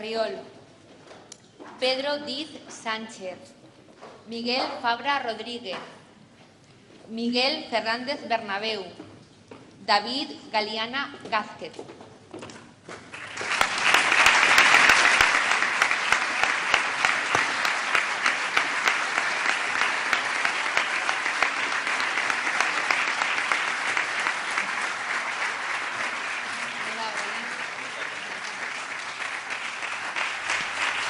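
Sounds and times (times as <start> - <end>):
speech: 0.0 - 0.6, 1.7 - 3.6, 4.3 - 6.0, 7.1 - 9.0, 9.8 - 12.0
audience applauding at graduation ceremony: 13.0 - 31.0.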